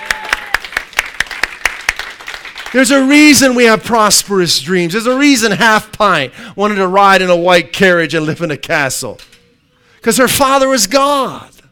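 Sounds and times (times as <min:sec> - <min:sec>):
audience clapping: 0:00.0 - 0:03.3
speech: 0:02.7 - 0:09.3, 0:10.0 - 0:11.5.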